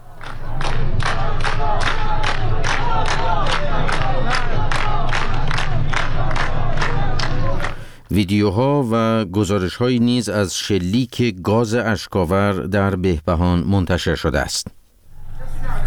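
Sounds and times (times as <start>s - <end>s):
large crowd chanting a protest slogan: 0.0s - 8.0s
speech: 8.2s - 14.8s.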